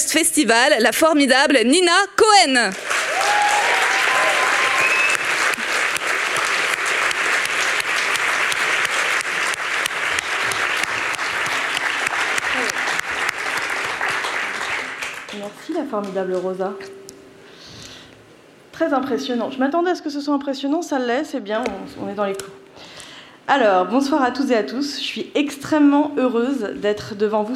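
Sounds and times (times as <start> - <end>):
speech: 0.1 - 3.4, 15.4 - 17.0, 18.8 - 22.9, 23.5 - 27.5
large crowd applause: 2.7 - 15.6
cheers and whoops: 2.9 - 5.4.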